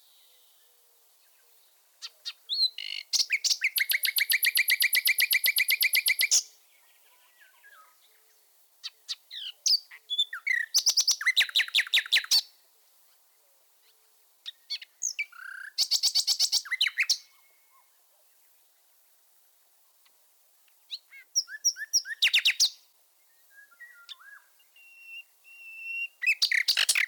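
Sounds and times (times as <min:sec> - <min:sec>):
common nightingale song: 0:00.0 - 0:27.0.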